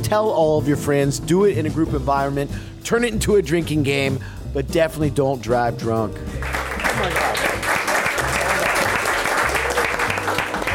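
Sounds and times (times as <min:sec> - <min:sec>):
speech: 0:00.1 - 0:07.4
audience slow clap: 0:06.4 - 0:10.7.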